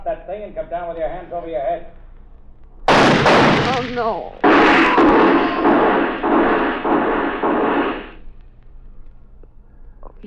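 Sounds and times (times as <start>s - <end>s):
speech: 0.3s - 2.0s, 3.7s - 6.5s
gunshots in a radio drama: 2.9s - 8.2s.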